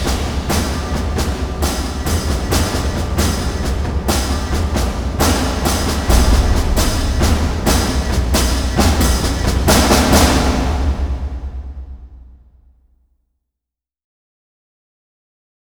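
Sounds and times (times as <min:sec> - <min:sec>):
percussion: 0:00.0 - 0:12.4.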